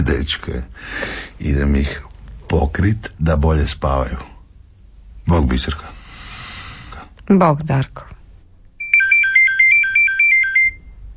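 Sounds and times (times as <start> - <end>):
speech: 0.0 - 4.3, 5.3 - 6.0, 7.3 - 8.2
electronic telephone ringtone: 8.8 - 11.0.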